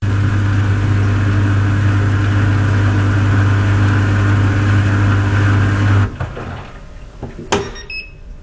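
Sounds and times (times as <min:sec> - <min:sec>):
small European clothes dryer running: 0:00.0 - 0:08.1
clunk: 0:06.2 - 0:08.0.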